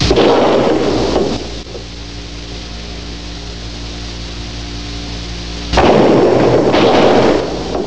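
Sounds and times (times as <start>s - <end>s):
gunshots: 0.0s - 1.6s, 5.7s - 7.8s.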